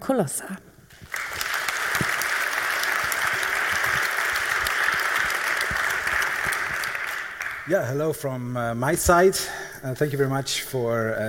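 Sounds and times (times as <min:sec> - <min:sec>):
speech: 0:00.0 - 0:00.7, 0:07.7 - 0:11.2
audience applause: 0:00.9 - 0:07.7.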